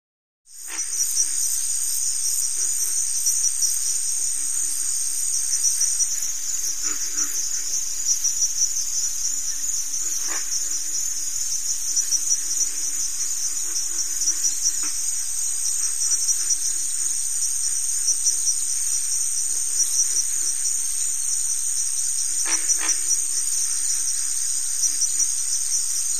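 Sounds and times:
cricket chorus trilling: 0.5 - 26.1.

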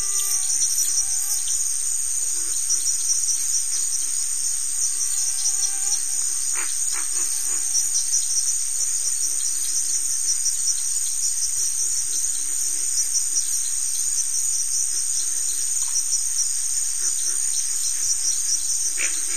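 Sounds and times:
cricket giving a continuous high buzzy trill: 0.0 - 19.3.

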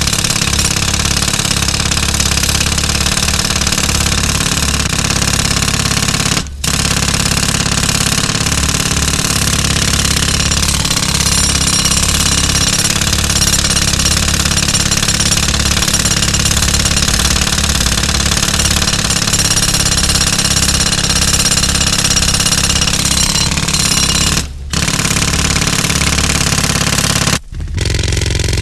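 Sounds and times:
constant heavy drilling: 0.0 - 28.5.

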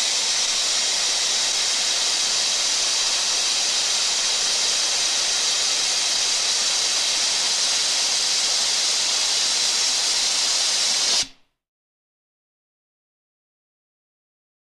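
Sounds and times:
long air blast: 0.0 - 11.4.

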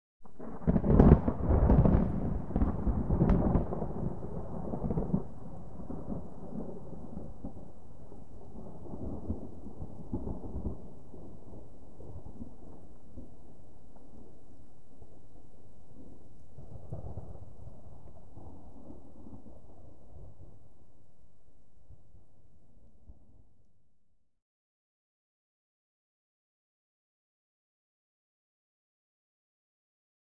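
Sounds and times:
low rippling distant thunder: 0.3 - 20.8.

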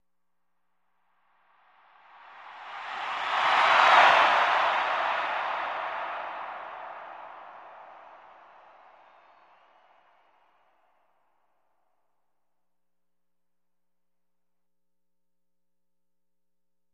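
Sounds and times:
huge arena crowd cheering with Doppler: 2.0 - 11.0.

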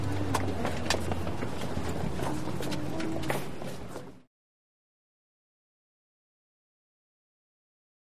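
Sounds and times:
footsteps on small exterior stairs: 0.0 - 4.3.

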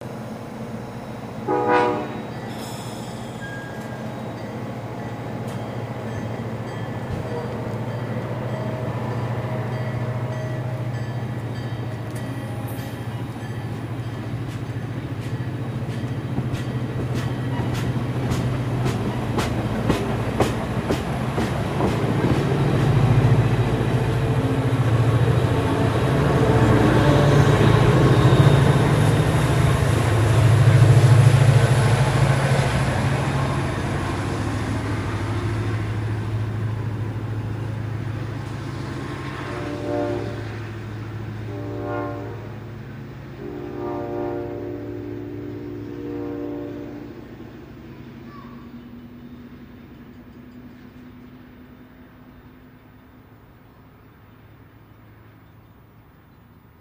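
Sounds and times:
train leaving station: 0.0 - 56.8.

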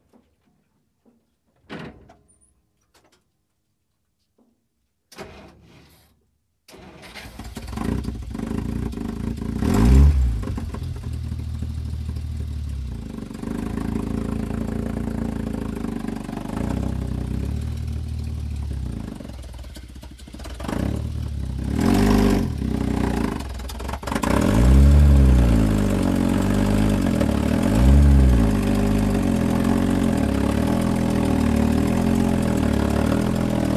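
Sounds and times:
Dodge Power Wagon fire truck engine rough starts, revs and stalls from interior: 6.7 - 33.7.

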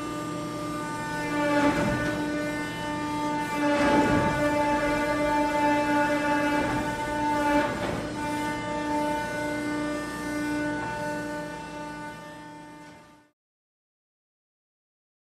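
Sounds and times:
machinery running in a pump room: 0.0 - 13.0.

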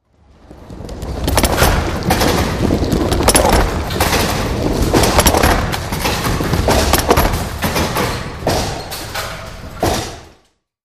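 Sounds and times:
bowling ball rolling: 0.1 - 8.7.

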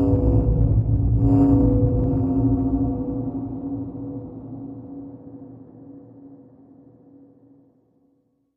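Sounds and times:
low pulsing power core hum: 0.0 - 6.1.

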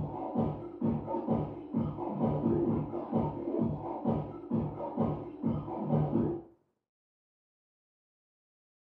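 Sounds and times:
electronic dance music: 0.0 - 6.4.

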